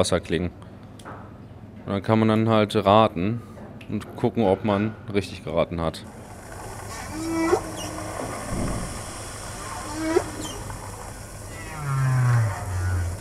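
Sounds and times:
speech: 0:00.0 - 0:00.7, 0:01.8 - 0:06.2
hissing sea noise: 0:06.1 - 0:13.1
whale song underwater: 0:06.1 - 0:13.1.

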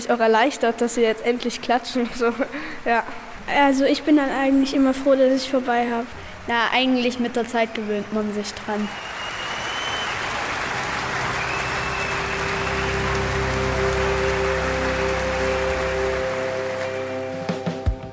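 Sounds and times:
speech: 0:00.0 - 0:09.1
rain pattering: 0:00.0 - 0:18.0
sustained tonal sounds: 0:11.3 - 0:17.9.

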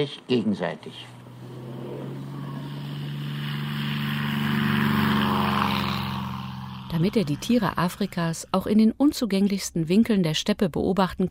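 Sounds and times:
speech: 0:00.0 - 0:01.2, 0:06.9 - 0:11.3
small propeller airplane in flight: 0:00.6 - 0:08.6.

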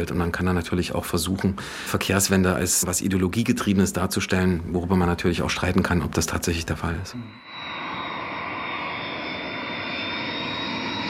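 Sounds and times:
speech: 0:00.0 - 0:07.8
airplane engines roaring as a plane takes off or lands: 0:07.5 - 0:11.0.

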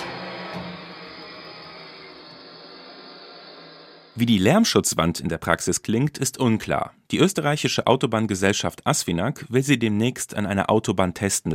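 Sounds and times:
bench grinder damped by resonators: 0:00.0 - 0:04.2
speech: 0:04.2 - 0:11.5.

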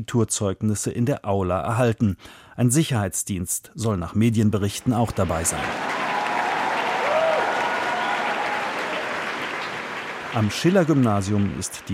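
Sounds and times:
speech: 0:00.0 - 0:06.0, 0:10.3 - 0:11.9
applause in a school auditorium: 0:04.8 - 0:11.9.

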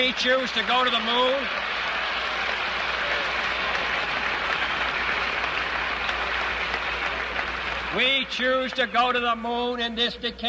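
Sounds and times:
speech: 0:00.0 - 0:01.9, 0:07.9 - 0:10.4
applause in a played speech recording: 0:00.0 - 0:09.7.

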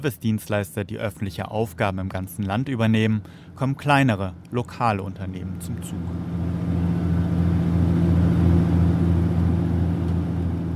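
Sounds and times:
speech: 0:00.0 - 0:06.7
diesel engines rumbling in commuter train carriage: 0:03.0 - 0:10.7.

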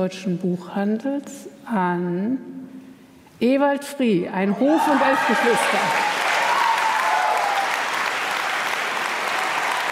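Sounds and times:
speech: 0:00.0 - 0:02.6, 0:03.4 - 0:06.2
cheering at an award ceremony: 0:04.5 - 0:09.9
applause at an award ceremony: 0:05.0 - 0:09.9.

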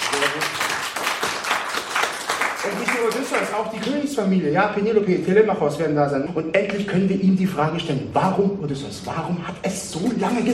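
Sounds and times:
talk-show studio audience applauding for Odysseus: 0:00.0 - 0:04.0
speech: 0:00.2 - 0:00.7, 0:02.6 - 0:10.5.

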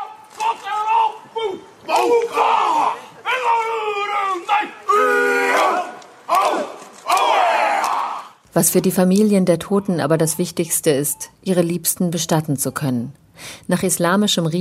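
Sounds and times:
male voices chanting Maori haka: 0:00.0 - 0:08.3
speech: 0:08.6 - 0:14.5.

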